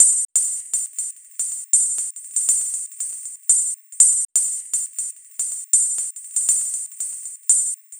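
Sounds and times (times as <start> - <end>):
electronic ride cymbal beat: 0.0 - 7.9.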